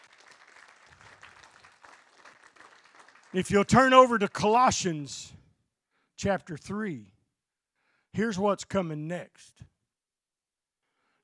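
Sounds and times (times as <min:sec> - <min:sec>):
audience hand clapping: 0:00.0 - 0:04.6
speech: 0:03.3 - 0:05.4, 0:06.2 - 0:07.1, 0:08.2 - 0:09.7.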